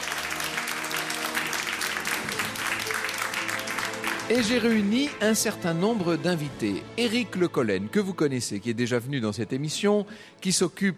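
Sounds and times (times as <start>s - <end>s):
live audience applauding at a public radio show in Bordeaux: 0.0s - 6.2s
speech: 4.3s - 10.9s.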